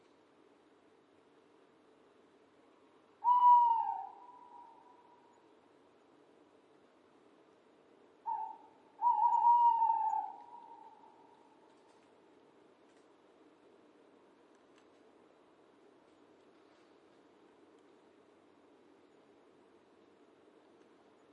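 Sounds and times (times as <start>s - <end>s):
owl hooting: 3.2s - 5.4s, 8.2s - 11.6s.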